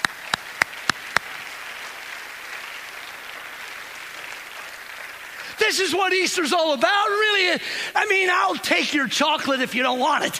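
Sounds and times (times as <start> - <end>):
audience hand clapping: 0.0 - 6.0
speech: 5.6 - 10.3.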